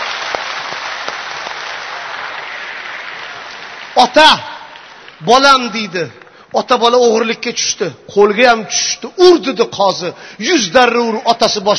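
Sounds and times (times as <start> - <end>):
audience applause at a stage show: 0.0 - 5.3
speech: 4.0 - 4.5, 5.2 - 11.7.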